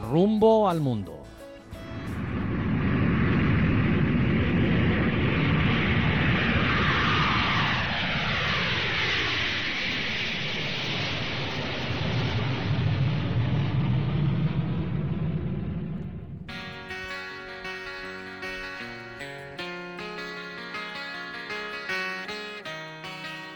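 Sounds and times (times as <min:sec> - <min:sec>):
speech: 0:00.1 - 0:01.2
airplane engines at full power for takeoff from the head of the runway: 0:01.4 - 0:23.5.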